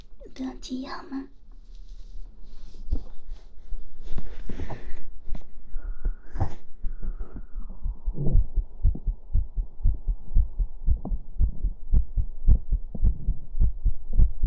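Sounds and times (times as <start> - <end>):
speech: 0.4 - 1.4
rustling and scraping: 0.8 - 7.4
heartbeat thumping: 2.9 - 14.4.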